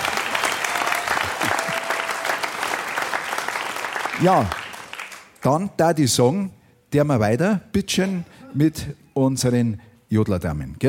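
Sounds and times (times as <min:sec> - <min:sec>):
audience applause: 0:00.0 - 0:05.3
speech: 0:04.2 - 0:04.6, 0:05.4 - 0:10.8.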